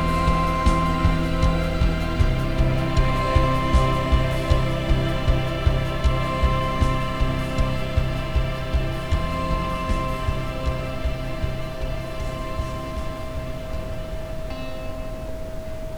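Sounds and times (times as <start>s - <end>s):
ambient sound: 0.0s - 15.8s.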